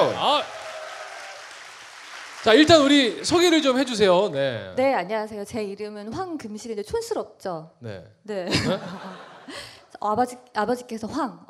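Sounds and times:
applause: 0.0 - 4.0
speech: 2.4 - 11.4
laughter: 8.5 - 9.6.

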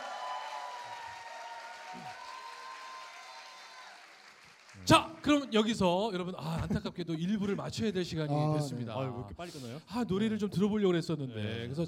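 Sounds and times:
audience applauding: 0.0 - 5.6
speech: 4.8 - 11.8.

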